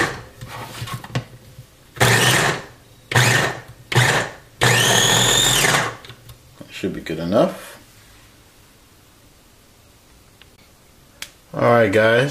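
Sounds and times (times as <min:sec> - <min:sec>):
electric food chopper chopping onions: 0:00.0 - 0:00.2, 0:02.0 - 0:06.1
speech: 0:06.8 - 0:07.7, 0:11.6 - 0:12.2.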